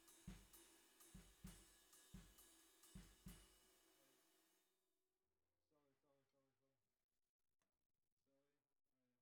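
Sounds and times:
bottom snare drum: 0:00.0 - 0:03.6.

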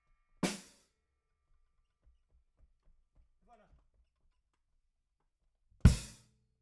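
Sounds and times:
bass drum: 0:05.9 - 0:06.2.

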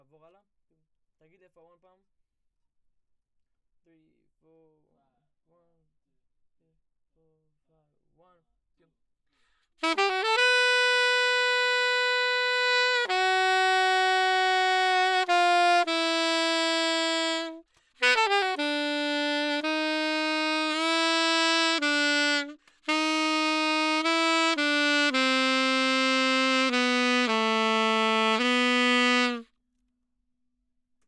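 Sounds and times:
saxophone: 0:09.8 - 0:29.5.

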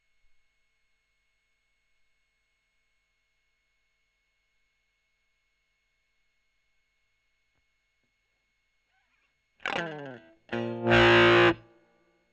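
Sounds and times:
overdriven electric guitar recorded with Gefell: 0:09.6 - 0:11.7.

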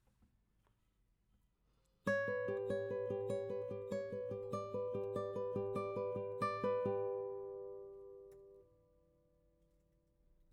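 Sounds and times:
guitar: 0:02.0 - 0:09.1.

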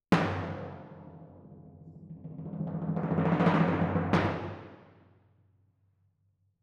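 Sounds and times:
timpani in F: 0:00.1 - 0:05.0.

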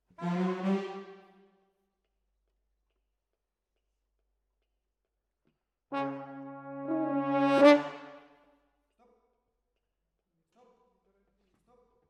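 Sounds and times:
horns: 0:00.0 - 0:01.3, 0:05.9 - 0:08.2.

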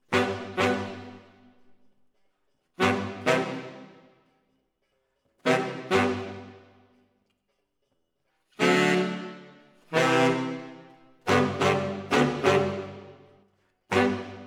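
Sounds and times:
saxophones: 0:00.0 - 0:01.5, 0:02.8 - 0:04.0, 0:05.4 - 0:06.8, 0:08.6 - 0:13.3, 0:13.9 - 0:14.4.

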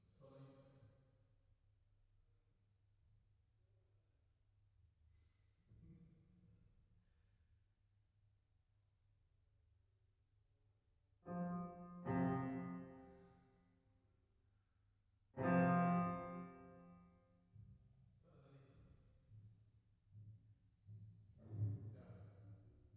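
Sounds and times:
piano: 0:11.3 - 0:13.4, 0:15.4 - 0:17.0.

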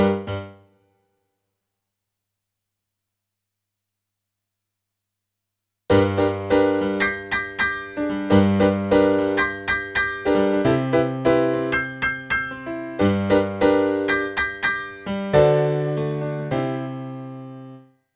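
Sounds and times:
rock and roll piano: 0:00.0 - 0:00.6, 0:05.9 - 0:17.8.

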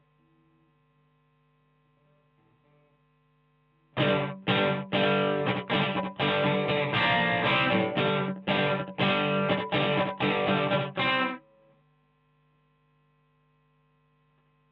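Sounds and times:
guitar: 0:03.9 - 0:11.8.

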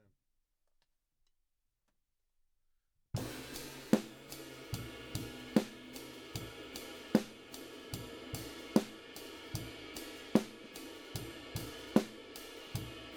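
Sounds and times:
drums: 0:03.2 - 0:13.1.

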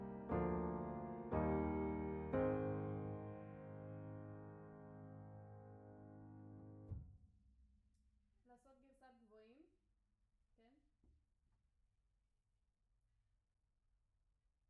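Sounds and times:
piano note B: 0:00.0 - 0:07.0.

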